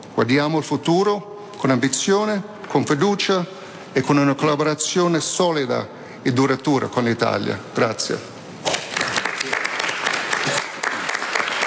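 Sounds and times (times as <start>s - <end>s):
speech: 0.2s - 8.3s
audience applause: 8.8s - 11.6s.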